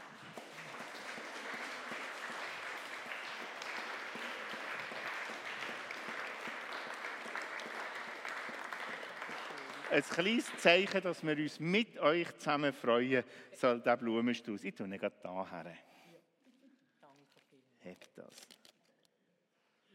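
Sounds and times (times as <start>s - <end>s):
applause at a 60th wedding anniversary celebration: 0.0s - 11.8s
speech: 9.9s - 15.9s.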